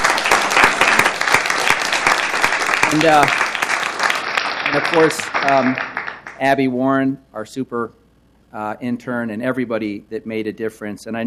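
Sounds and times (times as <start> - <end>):
audience applause: 0.0 - 6.4
speech: 2.9 - 3.4, 4.7 - 11.2.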